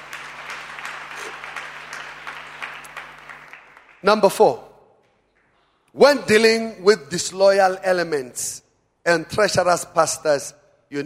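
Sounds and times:
audience applause: 0.0 - 4.0
speech: 4.0 - 4.6, 6.0 - 11.0.

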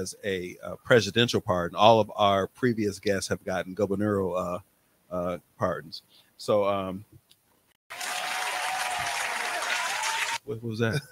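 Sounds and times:
speech: 0.0 - 7.2, 10.5 - 11.0
applause for the first presidential pardon: 7.9 - 10.4.

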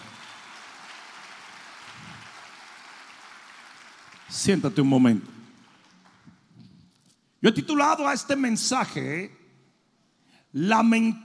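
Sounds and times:
audience applause: 0.0 - 6.4
speech: 4.3 - 5.4, 7.4 - 9.4, 10.5 - 11.2.

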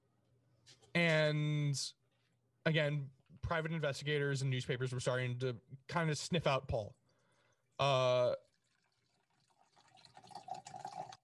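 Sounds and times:
speech: 0.7 - 2.0, 2.6 - 7.0, 7.8 - 8.4
person urinating: 7.0 - 11.2.

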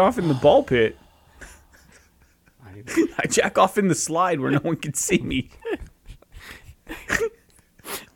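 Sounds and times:
speech: 0.0 - 1.5, 2.7 - 7.4
person gasping while holding back words: 0.0 - 2.5.

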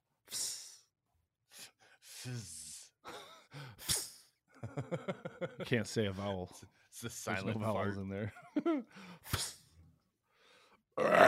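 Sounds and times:
loud rush of noisy breath: 1.5 - 4.4, 8.9 - 9.6, 10.2 - 10.8
speech: 2.2 - 2.6, 4.7 - 9.4, 11.0 - 11.2
laughter: 4.6 - 6.3, 8.3 - 8.9
low guttural burp: 11.0 - 11.2.

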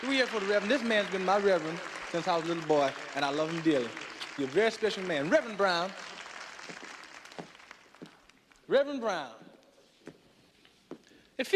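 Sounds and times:
speech: 0.0 - 6.1, 8.7 - 9.4, 11.4 - 11.5
crowd applauding: 0.0 - 8.6.

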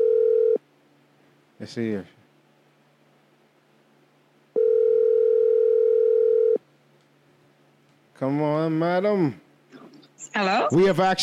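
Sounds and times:
telephone ringback tone from an outgoing call: 0.0 - 0.6, 4.6 - 6.6
speech: 1.6 - 2.2, 8.2 - 9.4, 10.3 - 11.2.

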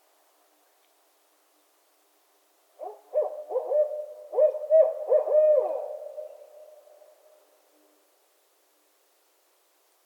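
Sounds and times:
Barred owls trading excited hoots and looping cackles: 2.8 - 6.5.

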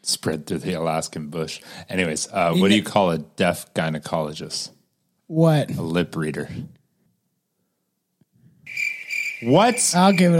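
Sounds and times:
speech: 0.0 - 6.8, 9.4 - 10.3
cricket chirping sound effect: 8.7 - 10.3.

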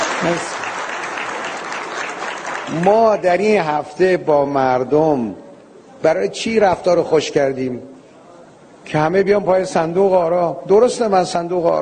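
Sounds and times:
audience applause: 0.0 - 3.2
speech: 0.2 - 0.6, 2.7 - 5.4, 6.0 - 7.9, 8.9 - 11.7.

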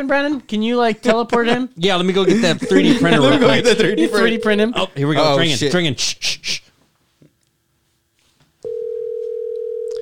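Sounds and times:
speech: 0.0 - 6.6
laughter: 1.2 - 4.4
telephone dial tone of outgoing call: 8.6 - 10.0.

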